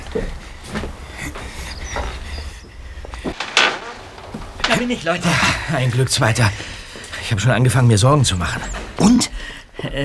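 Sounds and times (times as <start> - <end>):
shuffling: 0.0 - 9.4
soft knocks and thuds: 3.1 - 5.8
door creak and clunk: 3.2 - 5.6
speech: 4.8 - 10.0.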